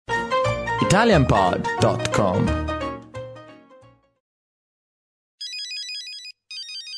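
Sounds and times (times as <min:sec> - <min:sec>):
speech: 0:00.8 - 0:02.7
mobile phone ringing: 0:05.4 - 0:06.9.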